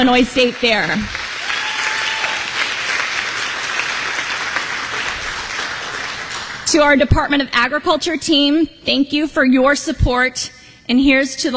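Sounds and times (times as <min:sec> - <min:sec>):
speech: 0:00.0 - 0:01.2, 0:06.7 - 0:11.5
applause: 0:00.0 - 0:06.7.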